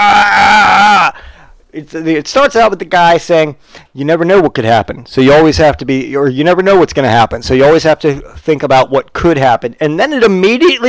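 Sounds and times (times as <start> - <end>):
man screaming: 0.0 - 1.2
speech: 1.7 - 10.8.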